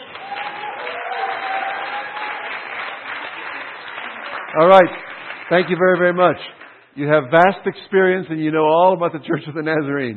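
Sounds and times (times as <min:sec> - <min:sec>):
audience cheering: 0:00.0 - 0:05.0
audience applause: 0:00.0 - 0:06.8
speech: 0:04.5 - 0:10.1.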